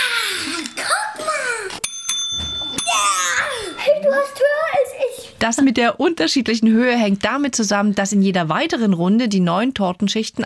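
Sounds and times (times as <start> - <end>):
excited children talking and giggling: 0.0 - 1.8, 2.7 - 5.4
hand bell struck with a bright metallic ding: 1.8 - 4.1
speech: 5.4 - 10.4.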